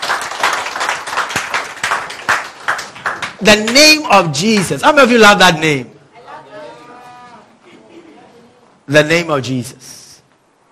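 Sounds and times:
audience clapping: 0.0 - 4.9
speech: 3.4 - 5.9, 8.9 - 10.0.

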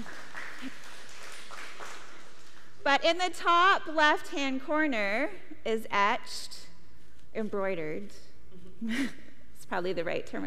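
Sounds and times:
audience clapping: 0.0 - 2.9
speech: 2.9 - 6.6, 7.4 - 8.2, 8.8 - 10.4.

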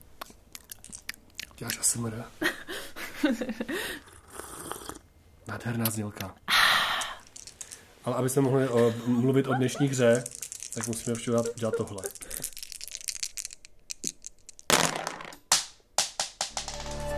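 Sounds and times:
speech: 1.6 - 2.5, 3.2 - 4.2, 5.5 - 6.4, 8.0 - 12.6
dice thrown onto the floor: 7.2 - 7.9, 9.8 - 17.1
laughter: 8.4 - 12.4.

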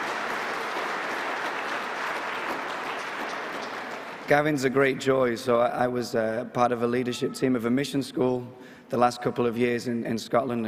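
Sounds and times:
audience applause: 0.0 - 4.8
speech: 4.3 - 10.6.

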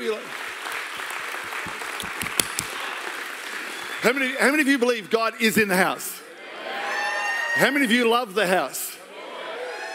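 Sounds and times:
audience clapping: 0.0 - 4.7
speech: 4.0 - 6.3, 7.6 - 8.8.

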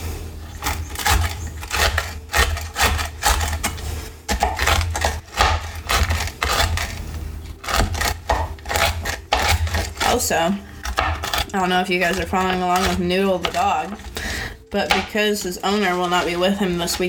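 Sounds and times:
knife chopping nuts on a wooden board: 0.6 - 17.0
speech: 10.2 - 10.7, 11.5 - 14.1, 14.7 - 17.0.

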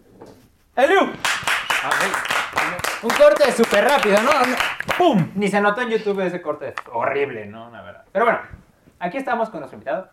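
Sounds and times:
speech: 0.8 - 1.4, 3.0 - 10.1
applause: 1.2 - 5.1.

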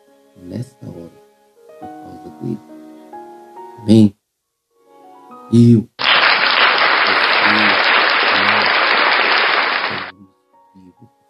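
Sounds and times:
speech: 0.4 - 1.2, 1.8 - 2.7, 3.8 - 4.2, 5.5 - 5.9
applause at a worship service: 6.0 - 10.1.

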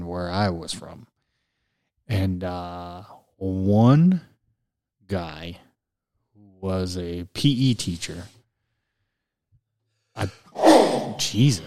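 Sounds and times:
speech: 0.1 - 1.1, 2.1 - 4.3, 5.1 - 5.6, 6.6 - 8.4, 10.2 - 10.4, 11.2 - 11.6
person sneezing: 10.6 - 11.6.

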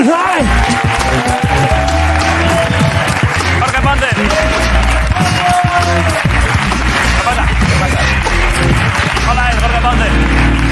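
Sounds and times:
audience applause: 0.3 - 10.6.

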